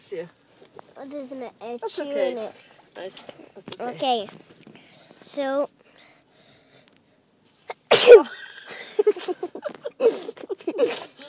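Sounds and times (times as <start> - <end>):
speech: 0.1 - 0.4, 1.0 - 4.6, 5.2 - 5.8, 8.0 - 8.4, 10.8 - 11.2
person sneezing: 7.8 - 8.4.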